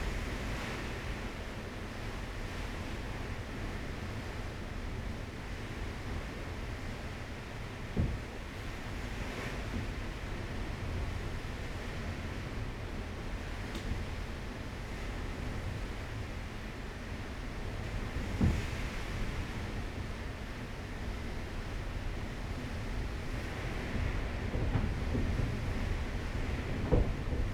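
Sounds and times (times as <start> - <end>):
storm outside a door in Curacao: 0.0 - 27.5.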